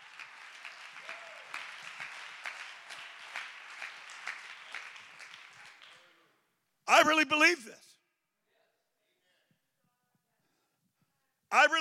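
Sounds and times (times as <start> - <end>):
audience clapping hands: 0.0 - 6.3
speech: 6.9 - 7.9.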